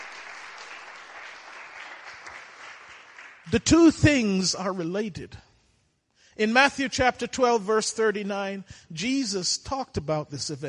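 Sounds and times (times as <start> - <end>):
audience clapping: 0.0 - 3.7
speech: 3.5 - 5.5, 6.4 - 10.6.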